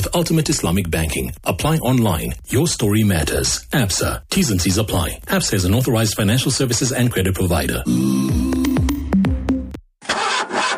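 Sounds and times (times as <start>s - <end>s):
speech: 0.1s - 8.6s
old car engine cranking: 10.0s - 10.7s.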